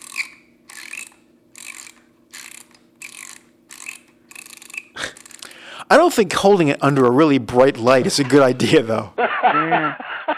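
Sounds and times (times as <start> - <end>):
film being wound onto a developing reel: 0.0 - 5.5
speech: 5.9 - 10.1
laughter: 7.9 - 10.3.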